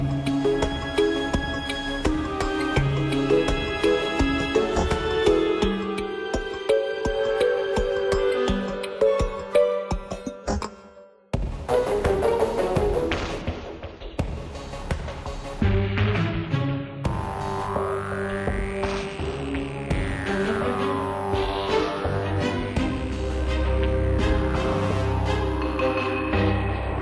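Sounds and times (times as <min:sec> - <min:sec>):
underground jungle music: 0:00.0 - 0:10.8, 0:11.4 - 0:26.9.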